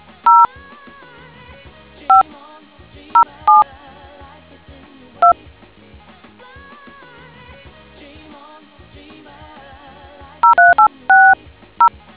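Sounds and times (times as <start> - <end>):
DTMF tones: 0.3 - 0.5, 3.2 - 3.6, 10.4 - 11.4.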